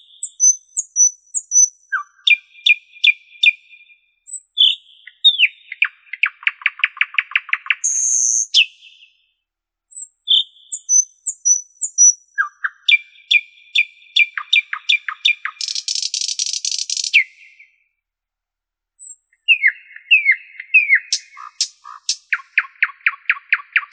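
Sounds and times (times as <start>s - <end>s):
common nightingale singing: 0.0s - 9.3s, 9.9s - 17.9s, 19.0s - 23.9s.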